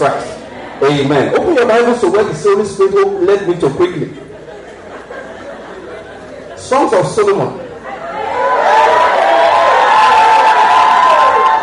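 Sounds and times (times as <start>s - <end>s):
speech: 0.9s - 4.2s, 6.7s - 7.6s
laughter: 3.8s - 6.8s
audience shouting: 8.0s - 11.6s.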